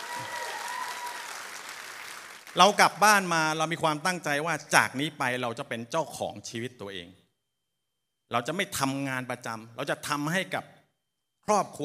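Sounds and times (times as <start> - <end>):
audience applause: 0.0 - 2.8
speech: 2.5 - 7.2, 8.3 - 10.8, 11.5 - 11.8.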